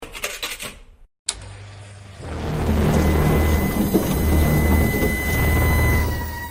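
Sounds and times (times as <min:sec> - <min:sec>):
explosion: 0:02.2 - 0:06.4.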